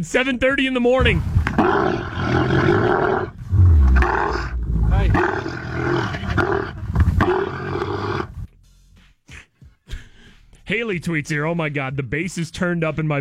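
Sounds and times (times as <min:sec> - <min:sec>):
speech: 0:00.0 - 0:03.4, 0:04.3 - 0:07.4, 0:10.7 - 0:13.2
camel mating noises: 0:01.2 - 0:08.5.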